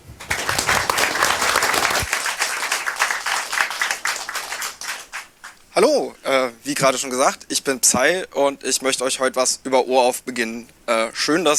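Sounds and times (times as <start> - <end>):
audience applause: 0.0 - 5.6
speech: 5.8 - 11.5.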